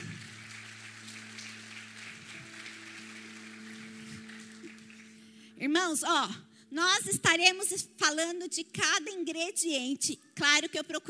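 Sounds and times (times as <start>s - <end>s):
crowd clapping: 0.0s - 5.4s
speech: 5.6s - 11.0s.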